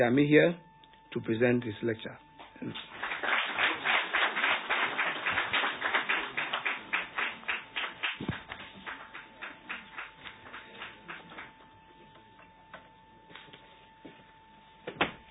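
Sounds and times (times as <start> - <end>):
speech: 0.0 - 2.9
crowd applause: 2.6 - 11.6.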